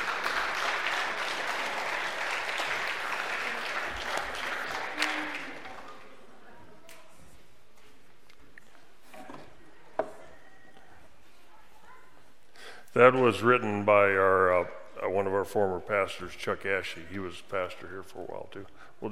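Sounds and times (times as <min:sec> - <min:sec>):
audience applause: 0:00.0 - 0:06.2
speech: 0:13.0 - 0:19.1.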